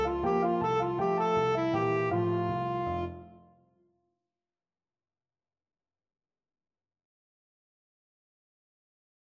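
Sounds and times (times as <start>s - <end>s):
tenor saxophone: 0.0s - 3.5s.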